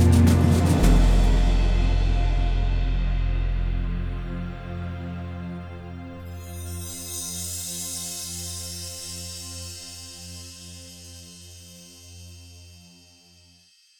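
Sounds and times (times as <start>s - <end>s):
big drums: 0.0s - 6.8s.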